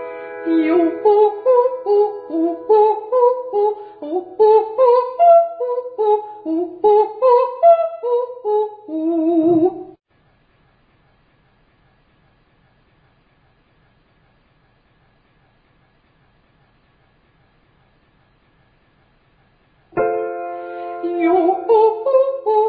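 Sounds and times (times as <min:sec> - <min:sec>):
descending vocal triads: 0:00.4 - 0:09.9, 0:20.7 - 0:22.6.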